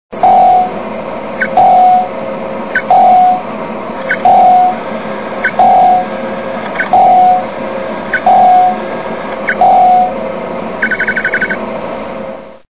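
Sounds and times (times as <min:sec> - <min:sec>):
radar sound: 0:00.2 - 0:00.8, 0:01.4 - 0:02.1, 0:02.8 - 0:03.4, 0:04.1 - 0:04.8, 0:05.4 - 0:07.5, 0:08.1 - 0:10.2, 0:10.8 - 0:11.6.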